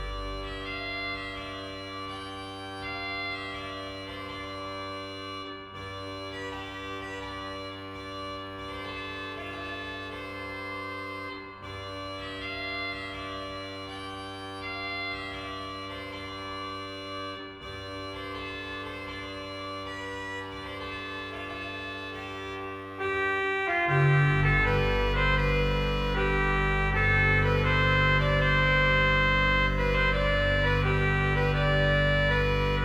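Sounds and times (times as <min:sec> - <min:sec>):
organ playing: 0:00.0 - 0:01.6, 0:23.1 - 0:32.8
Scottish bagpipes: 0:00.0 - 0:32.8.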